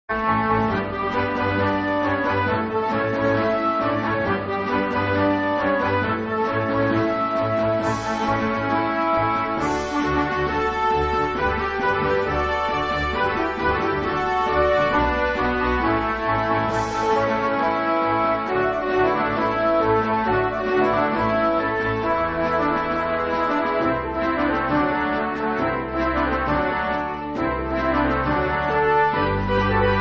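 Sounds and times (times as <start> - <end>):
orchestra: 0.0 - 29.9.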